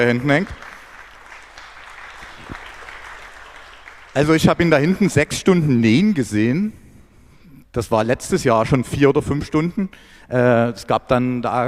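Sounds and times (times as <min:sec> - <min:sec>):
speech: 0:00.0 - 0:00.6, 0:04.2 - 0:06.8, 0:07.7 - 0:11.6
crowd applauding: 0:00.0 - 0:05.0.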